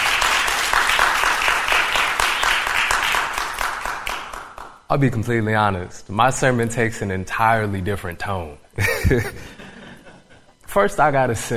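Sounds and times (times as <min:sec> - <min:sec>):
audience applause: 0:00.0 - 0:04.8
speech: 0:04.9 - 0:09.6, 0:10.8 - 0:11.5
laughter: 0:08.8 - 0:10.6.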